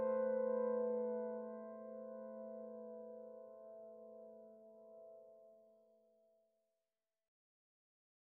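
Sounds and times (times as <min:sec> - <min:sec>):
solo piano: 0:00.0 - 0:05.4.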